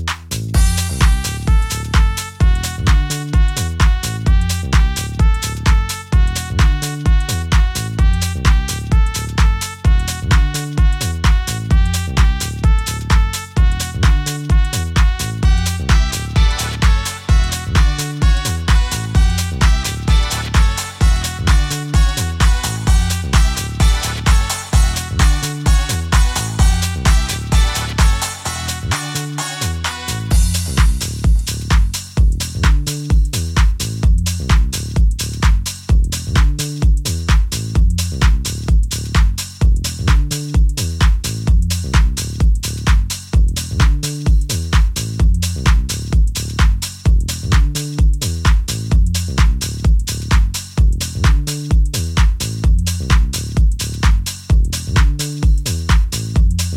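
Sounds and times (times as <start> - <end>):
dub instrumental: 0.0 - 56.7.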